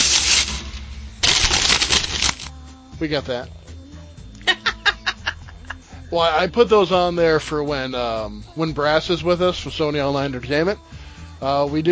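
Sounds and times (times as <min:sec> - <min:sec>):
mail ripped open as a sound effect: 0:00.0 - 0:02.5
speech: 0:03.0 - 0:03.6, 0:06.1 - 0:11.8
laughter: 0:04.4 - 0:06.2.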